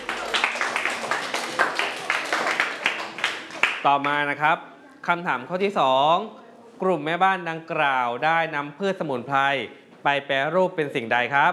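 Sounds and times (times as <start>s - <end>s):
students clapping: 0.0s - 4.2s
speech: 3.8s - 11.5s.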